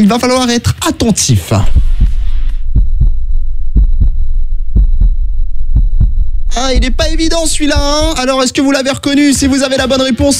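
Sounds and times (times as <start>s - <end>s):
speech: 0.0s - 2.0s, 6.6s - 10.3s
heartbeat: 1.6s - 8.4s.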